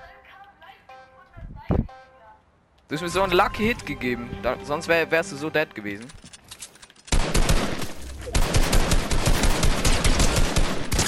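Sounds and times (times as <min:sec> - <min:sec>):
speech: 0:02.9 - 0:06.3
video game automatic rifle spray fire: 0:07.1 - 0:11.0.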